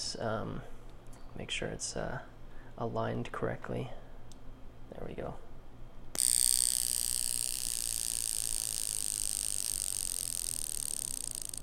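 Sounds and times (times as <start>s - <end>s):
speech: 0.1s - 4.0s, 4.9s - 5.5s
wristwatch alarm buzzing: 6.2s - 11.6s.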